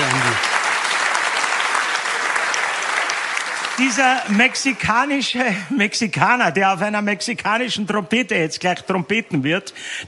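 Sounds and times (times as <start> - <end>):
audience applause: 0.0 - 5.5
speech: 3.8 - 10.0.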